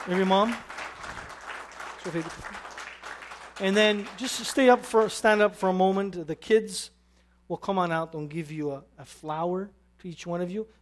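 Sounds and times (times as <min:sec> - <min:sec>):
speech: 0:00.0 - 0:00.7, 0:02.0 - 0:02.6, 0:03.6 - 0:10.7
audience applause for mothers at a Mother's Day gathering: 0:00.0 - 0:05.2.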